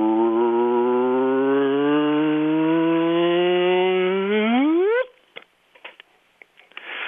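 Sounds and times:
simulated gravity-wave signal from merging black holes: 0:00.0 - 0:05.1.

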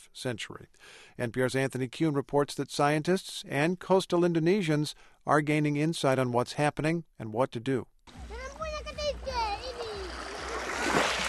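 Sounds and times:
speech: 0:00.1 - 0:08.2
children calling: 0:08.2 - 0:10.8
rising tide water lapping in an Indonesian mangrove village: 0:08.2 - 0:11.2.

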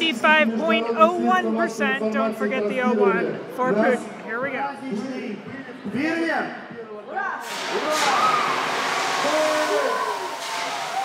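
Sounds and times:
speech: 0:00.1 - 0:10.1
crowd cheering at election rally: 0:07.4 - 0:11.0
voices shouting: 0:07.8 - 0:11.0.

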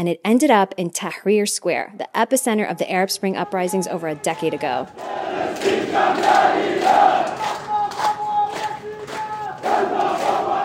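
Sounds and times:
speech: 0:00.0 - 0:07.6
large crowd chanting in unison: 0:04.0 - 0:10.6.

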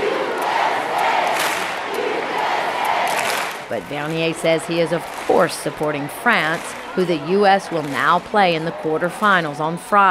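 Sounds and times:
big crowd of fans chanting in unison: 0:00.0 - 0:10.0
speech: 0:03.7 - 0:10.0.

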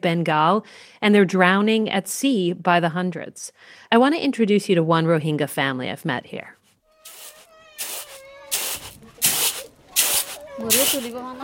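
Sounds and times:
speech: 0:00.0 - 0:06.6, 0:10.6 - 0:11.4
rice being sifted: 0:07.1 - 0:11.4.

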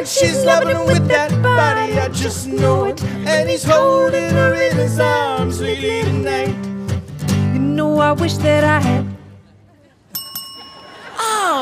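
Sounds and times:
speech: 0:00.0 - 0:06.7, 0:07.8 - 0:09.1
game show contestant ringing in with a bell: 0:10.1 - 0:11.2.

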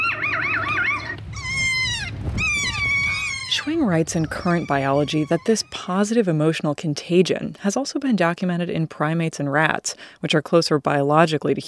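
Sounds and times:
recorded bird play call: 0:00.0 - 0:06.1
speech: 0:03.5 - 0:11.6.

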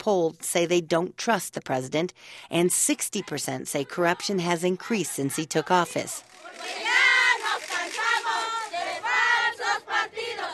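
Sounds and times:
speech: 0:00.0 - 0:06.9
crowd chanting political slogans in street: 0:03.0 - 0:10.5.

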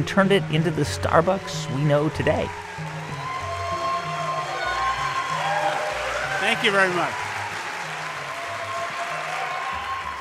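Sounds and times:
speech: 0:00.0 - 0:02.8, 0:06.5 - 0:07.2
live audience in Seattle applauding: 0:02.5 - 0:10.1.

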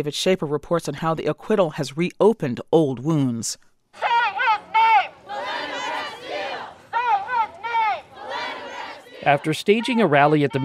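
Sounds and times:
speech: 0:00.0 - 0:04.1, 0:09.2 - 0:10.6
protesters shouting and chanting in the streets of St. Paul: 0:04.0 - 0:10.6.

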